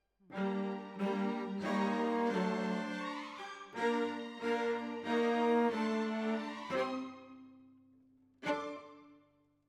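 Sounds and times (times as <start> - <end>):
cellos playing: 0.3 - 7.5, 8.4 - 9.1.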